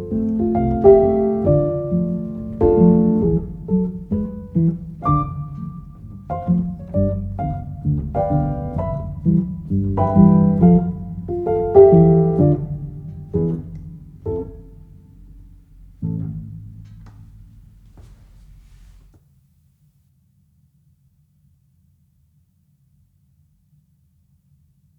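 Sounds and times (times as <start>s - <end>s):
piano: 0.0s - 19.1s.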